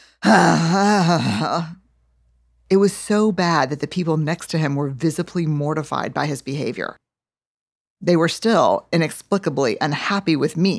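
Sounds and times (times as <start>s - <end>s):
speech: 0.2s - 1.8s, 2.7s - 7.0s, 8.0s - 10.7s
voice imitating an exaggerated, extremely loud sigh: 0.2s - 1.8s.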